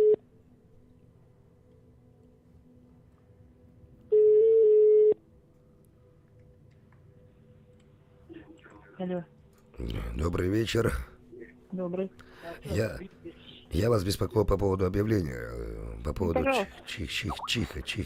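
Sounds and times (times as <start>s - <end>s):
phone line ringing tone: 0.0s - 0.2s, 4.1s - 5.2s
speech: 9.0s - 18.0s.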